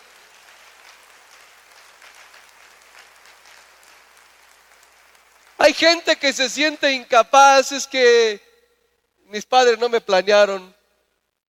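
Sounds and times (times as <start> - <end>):
audience applause: 0.0 - 5.7
speech: 5.7 - 8.5, 9.3 - 10.8.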